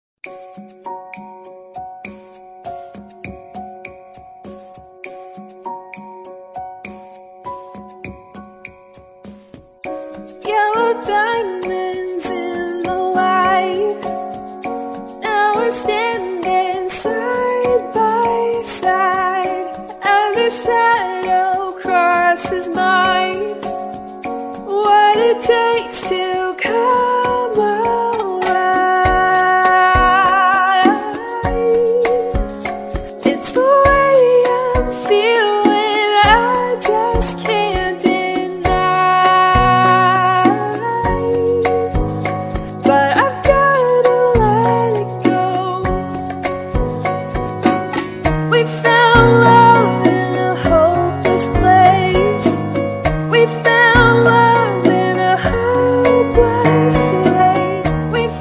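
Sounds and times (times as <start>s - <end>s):
ballroom rumba music: 0.2s - 58.3s.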